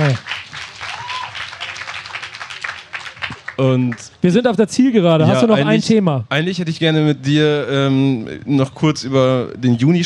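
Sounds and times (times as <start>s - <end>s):
audience applause: 0.0s - 4.0s
speech: 3.6s - 10.0s.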